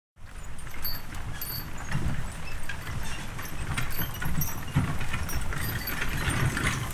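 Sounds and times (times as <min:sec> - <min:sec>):
horse-drawn wagon: 0:00.2 - 0:06.9.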